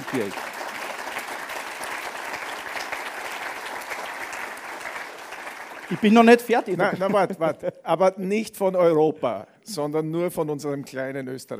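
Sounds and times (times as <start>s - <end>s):
audience applause: 0.0s - 7.3s
speech: 0.1s - 0.5s, 5.9s - 11.5s
laughter: 5.9s - 8.0s.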